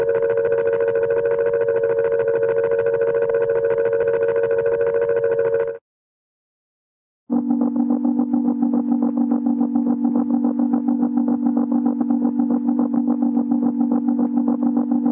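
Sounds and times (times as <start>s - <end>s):
cartoon electronic oscillator whiplash: 0.0s - 5.8s, 7.3s - 15.0s.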